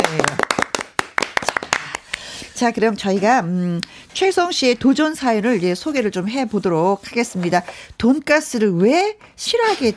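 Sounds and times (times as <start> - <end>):
clapping: 0.0 - 2.2
speech: 2.6 - 9.9.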